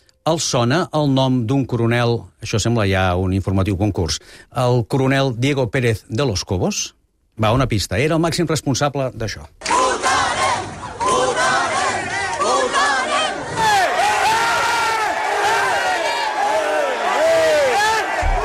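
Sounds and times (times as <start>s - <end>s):
speech: 0.2s - 9.7s
terrified crowd screaming during police crackdown: 9.6s - 18.4s.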